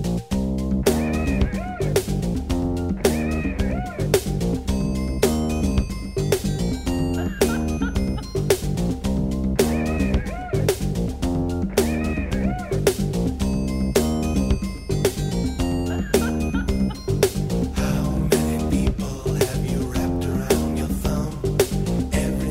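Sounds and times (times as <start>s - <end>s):
drum: 0.2s - 22.4s.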